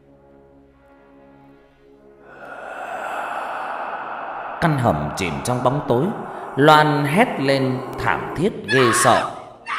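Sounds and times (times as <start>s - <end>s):
long forceful hoarse exhale: 2.2s - 9.6s
speech: 4.6s - 9.4s.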